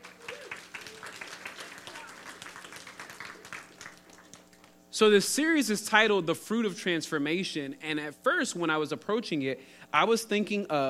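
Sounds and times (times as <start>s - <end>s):
crowd applauding for volunteers: 0.0s - 4.7s
speech: 5.0s - 10.8s.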